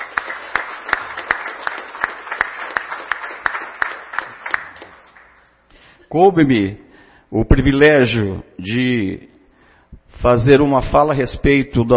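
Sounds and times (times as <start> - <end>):
audience applause: 0.0 - 5.5
speech: 6.1 - 9.3, 10.1 - 11.9.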